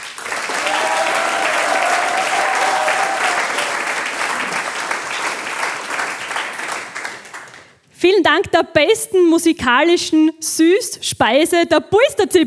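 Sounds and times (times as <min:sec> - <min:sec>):
audience applause: 0:00.0 - 0:07.8
speech: 0:08.1 - 0:12.4.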